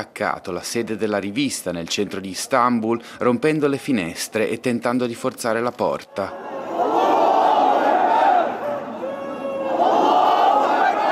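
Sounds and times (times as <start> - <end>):
speech: 0.0 - 6.5
crowd of protesters chanting slogans: 6.3 - 11.0.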